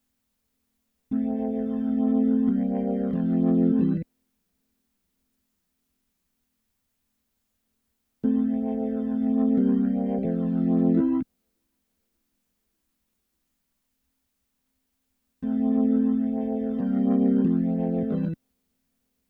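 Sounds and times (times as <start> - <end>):
keyboard playing: 1.1 - 4.0, 8.2 - 11.2, 15.4 - 18.4.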